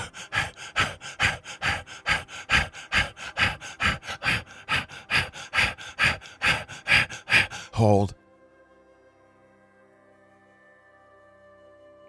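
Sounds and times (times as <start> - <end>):
rapid rhythmic breathing during a guided breathing exercise: 0.0 - 8.2
speech: 7.8 - 8.2.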